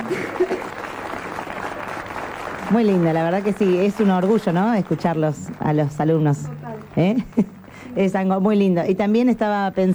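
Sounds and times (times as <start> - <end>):
audience applause: 0.0 - 7.9
speech: 2.7 - 9.9.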